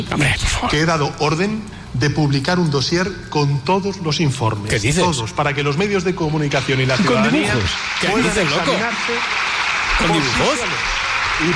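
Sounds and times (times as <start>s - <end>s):
speech: 0.0s - 11.5s
crowd applauding: 6.6s - 11.5s.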